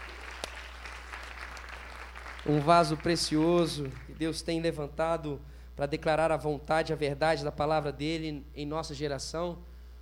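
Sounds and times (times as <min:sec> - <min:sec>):
audience applause: 0:00.0 - 0:04.2
speech: 0:02.4 - 0:09.7.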